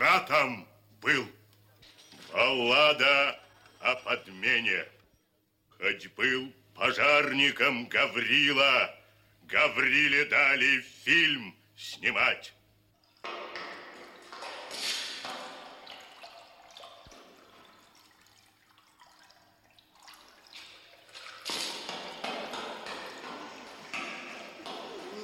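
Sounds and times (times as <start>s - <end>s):
speech: 0.2s - 1.3s, 2.5s - 5.0s, 5.8s - 12.6s
water pouring and splashing: 13.0s - 25.2s.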